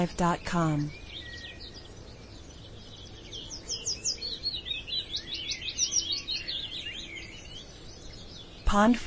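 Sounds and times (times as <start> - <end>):
speech: 0.0 - 1.0, 8.7 - 9.0
woodland birds chorus: 0.0 - 9.0.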